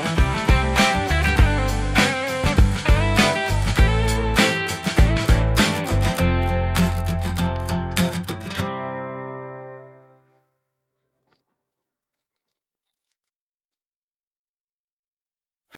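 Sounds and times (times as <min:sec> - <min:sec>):
instrumental music: 0:00.0 - 0:10.4.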